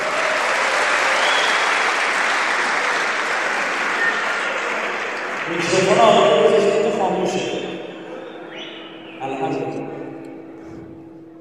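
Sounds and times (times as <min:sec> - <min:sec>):
audience applause: 0:00.0 - 0:08.8
speech: 0:05.6 - 0:07.7.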